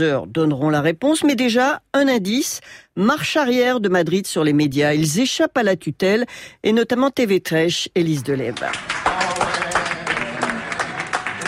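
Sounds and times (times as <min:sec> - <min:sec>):
speech: 0:00.0 - 0:09.7
newsroom staff applauding a football victory: 0:08.5 - 0:11.4.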